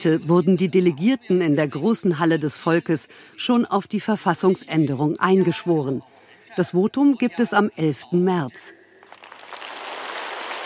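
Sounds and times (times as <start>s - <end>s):
speech: 0.0s - 8.8s
delegates applauding in a hall: 9.0s - 10.6s.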